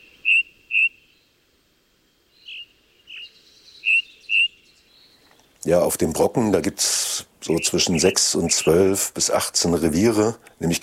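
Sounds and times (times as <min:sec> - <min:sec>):
ring ouzel singing on the Brocken: 0:00.0 - 0:01.0, 0:02.4 - 0:05.1, 0:07.4 - 0:08.8
speech: 0:05.6 - 0:10.8.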